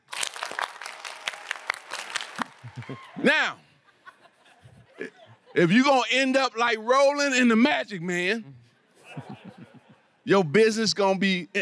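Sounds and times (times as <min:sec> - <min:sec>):
audience clapping: 0:00.0 - 0:03.1
laughter: 0:02.6 - 0:05.8, 0:09.0 - 0:10.2
speech: 0:02.8 - 0:03.6, 0:05.0 - 0:08.6, 0:10.3 - 0:11.6.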